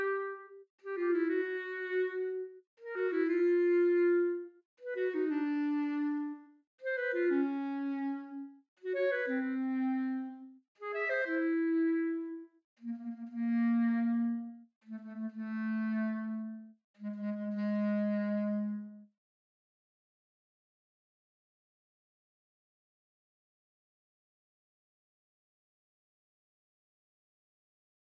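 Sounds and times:
clarinet: 0:00.0 - 0:19.1.

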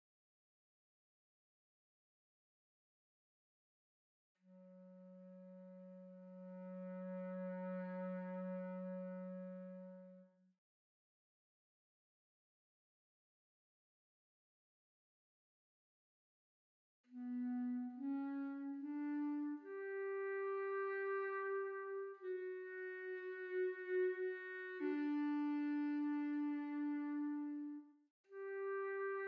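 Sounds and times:
clarinet: 0:04.4 - 0:10.4, 0:17.1 - 0:29.2.

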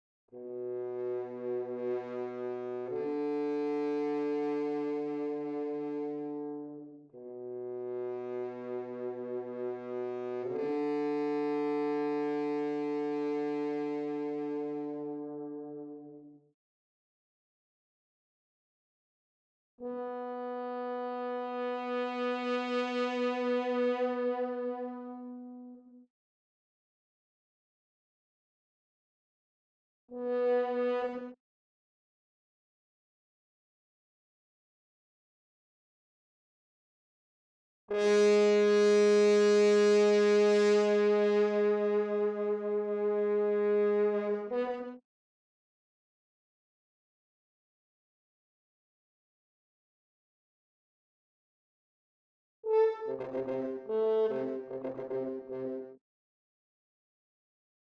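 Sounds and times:
horn: 0:00.3 - 0:16.3, 0:19.8 - 0:26.0, 0:30.1 - 0:31.4, 0:37.9 - 0:45.0, 0:52.6 - 0:56.0.

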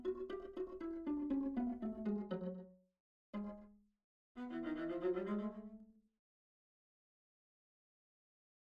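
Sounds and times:
viola playing a rondo: 0:00.0 - 0:02.8, 0:03.4 - 0:03.8, 0:04.4 - 0:05.8.

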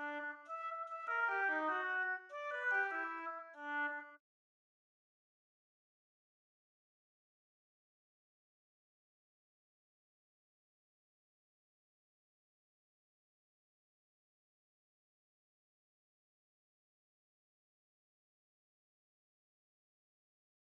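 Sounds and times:
oboe: 0:00.0 - 0:04.2.

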